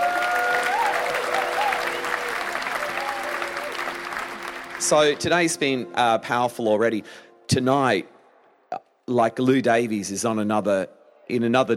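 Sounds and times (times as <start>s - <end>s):
crowd applauding: 0.0s - 5.7s
speech: 4.8s - 8.1s, 9.1s - 11.7s.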